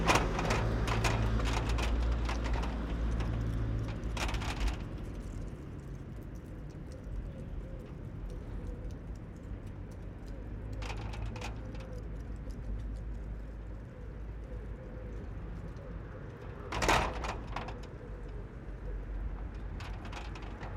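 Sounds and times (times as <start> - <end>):
gate moving in wind: 0.0 - 5.0, 16.4 - 20.7
wind in a town parking space: 0.0 - 20.7.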